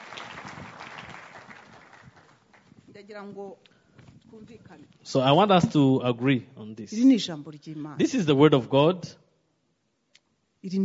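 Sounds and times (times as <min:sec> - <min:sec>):
audience clapping hands: 0:00.0 - 0:02.9
speech: 0:03.0 - 0:03.7, 0:04.3 - 0:09.2, 0:10.6 - 0:10.8.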